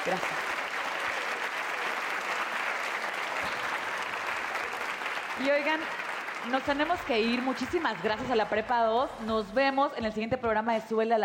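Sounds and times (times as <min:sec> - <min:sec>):
audience applause: 0:00.0 - 0:08.8
speech: 0:00.1 - 0:00.4, 0:05.4 - 0:11.2.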